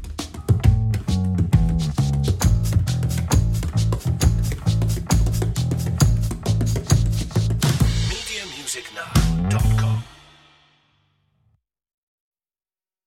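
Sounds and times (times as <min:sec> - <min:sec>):
bass in an old Irish tavern: 0:00.0 - 0:10.2
drums in an old Irish tavern: 0:00.0 - 0:11.0.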